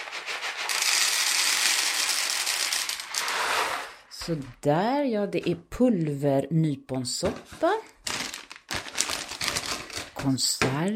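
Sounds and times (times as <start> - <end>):
dry macaroni poured into a plastic container: 0.4 - 3.6, 8.0 - 10.2
speech: 4.2 - 7.8, 10.2 - 10.9.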